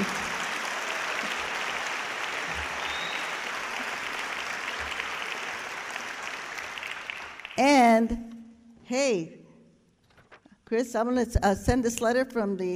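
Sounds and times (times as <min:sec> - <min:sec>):
audience applause: 0:00.0 - 0:07.6
speech: 0:07.6 - 0:08.3, 0:08.9 - 0:09.4, 0:10.7 - 0:12.7.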